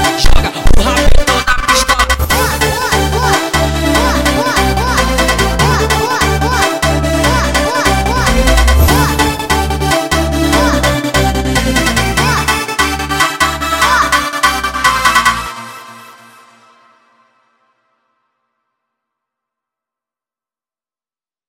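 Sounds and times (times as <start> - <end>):
sped up montagem music: 0.0 - 17.0.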